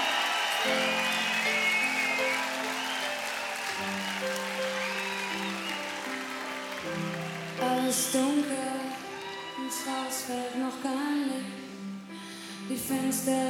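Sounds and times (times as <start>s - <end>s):
audience applause: 0.0s - 10.0s
speech: 8.0s - 8.7s, 9.7s - 11.6s, 12.7s - 13.4s.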